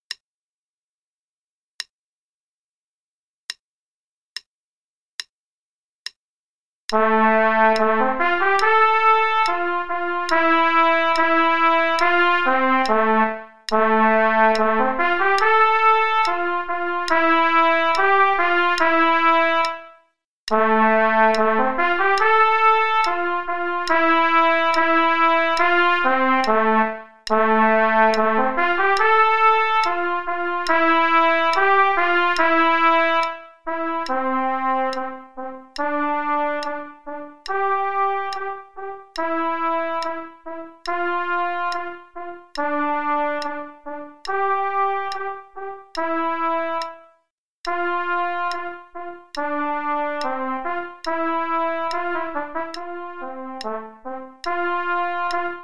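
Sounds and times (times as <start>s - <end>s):
trumpet play-along: 6.9s - 55.6s.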